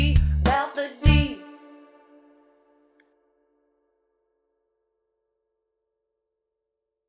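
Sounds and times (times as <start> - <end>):
strings: 0.2 - 3.0.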